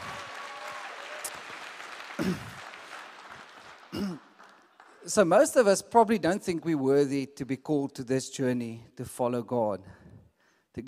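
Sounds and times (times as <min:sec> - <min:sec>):
cheers or exclamations: 0:00.0 - 0:01.6
crowd applause: 0:00.0 - 0:05.7
speech: 0:02.2 - 0:02.5, 0:05.1 - 0:10.0.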